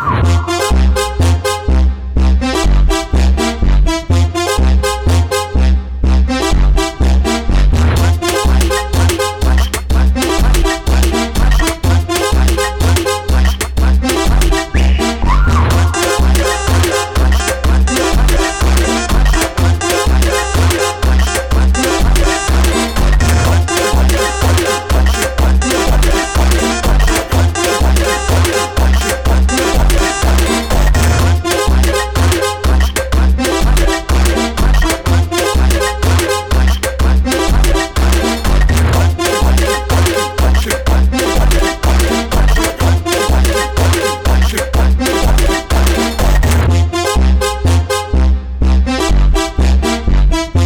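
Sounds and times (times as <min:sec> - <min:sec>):
accordion funk music: 0:00.2 - 0:50.6.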